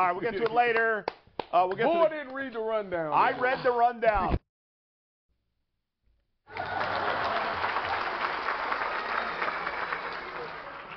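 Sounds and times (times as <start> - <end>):
speech: 0.0 - 4.4
round of applause: 6.5 - 10.9.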